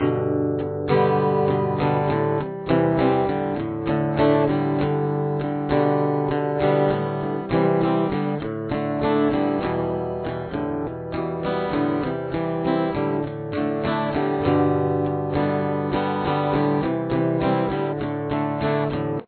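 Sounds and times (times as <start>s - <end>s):
guitar with chorus effect: 0.0s - 19.2s.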